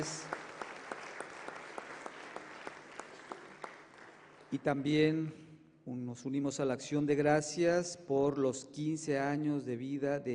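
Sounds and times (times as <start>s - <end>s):
audience applause: 0.0s - 4.6s
speech: 4.5s - 10.3s.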